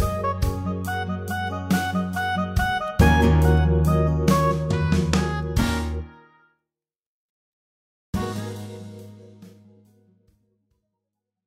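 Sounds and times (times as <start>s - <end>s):
instrumental music: 0.0s - 6.5s, 8.2s - 10.3s.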